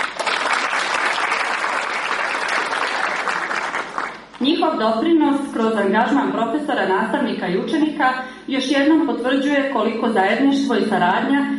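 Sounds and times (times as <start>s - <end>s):
audience applause at a cultural event: 0.0s - 4.4s
speech: 4.4s - 11.5s.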